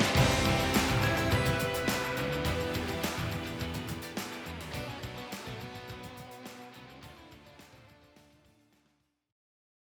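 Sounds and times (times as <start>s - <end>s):
corporate trailer music: 0.0s - 4.5s.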